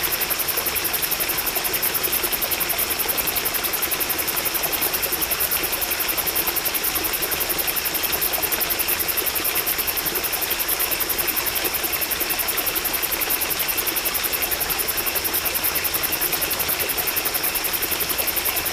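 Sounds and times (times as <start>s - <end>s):
crickets chirping at night: 0.0s - 18.7s.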